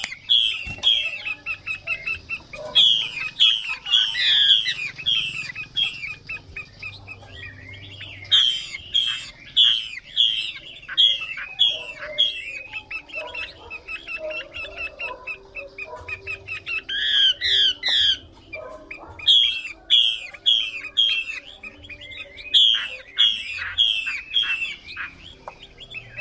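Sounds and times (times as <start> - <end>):
Chinese hwamei song: 0.0 - 26.2.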